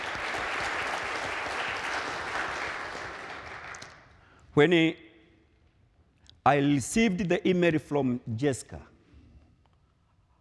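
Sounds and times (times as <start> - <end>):
crowd clapping: 0.0 - 4.2
speech: 4.6 - 5.0, 6.4 - 8.9.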